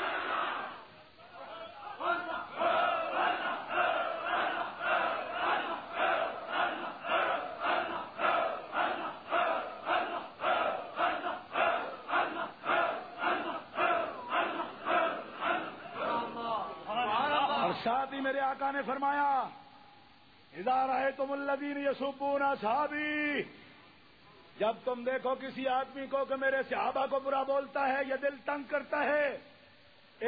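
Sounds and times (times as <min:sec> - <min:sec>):
large crowd chanting a religious slogan in unison: 0:00.0 - 0:17.7
speech: 0:18.6 - 0:19.6, 0:20.6 - 0:23.7, 0:24.6 - 0:29.5.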